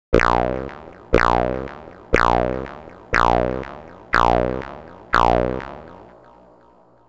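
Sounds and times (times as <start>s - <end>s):
gated robot sounds in 16 steps: 0.0s - 6.2s.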